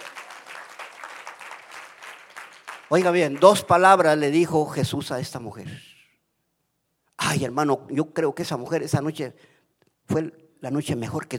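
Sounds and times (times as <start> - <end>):
audience clapping: 0.0 - 4.2
speech: 2.9 - 5.9, 7.4 - 9.5, 10.1 - 11.3.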